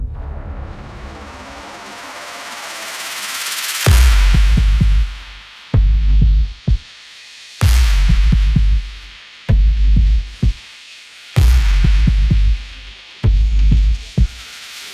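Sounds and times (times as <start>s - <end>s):
electronic dance music: 1.2s - 7.0s, 7.6s - 14.9s.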